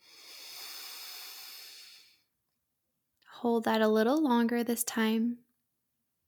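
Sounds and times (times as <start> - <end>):
slow breath exhaled through the mouth: 0.0 - 2.2
speech: 3.4 - 5.4.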